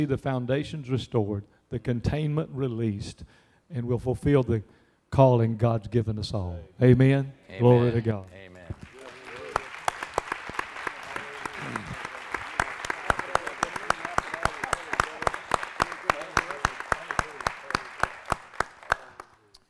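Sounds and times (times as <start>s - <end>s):
speech: 0.0s - 8.9s
audience applause: 8.2s - 19.4s.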